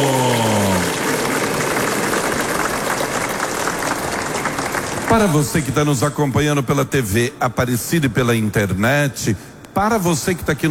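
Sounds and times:
crowd applauding: 0.0 - 8.3
speech: 5.2 - 10.6.

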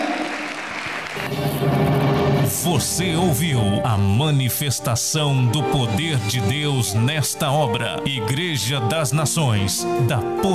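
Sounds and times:
audience applause: 0.0 - 2.4
speech: 2.5 - 10.5.

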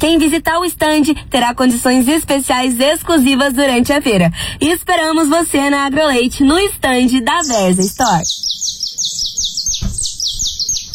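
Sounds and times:
speech: 0.0 - 8.8
saffron finch canário-da-terra chirping: 6.5 - 10.9
thump: 9.8 - 10.9.

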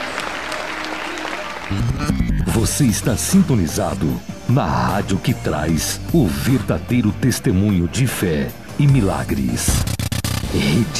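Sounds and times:
church congregation applause during a Christian radio service: 0.0 - 2.0
speech: 1.7 - 9.9, 10.5 - 10.9.

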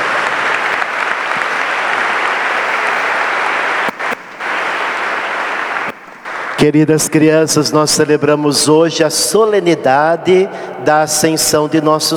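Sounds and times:
round of applause: 0.0 - 7.2
speech: 6.6 - 12.1.

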